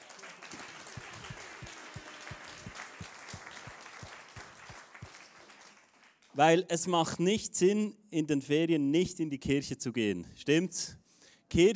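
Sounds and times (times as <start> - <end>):
crowd applause: 0.0 - 6.3
speech: 6.4 - 11.7.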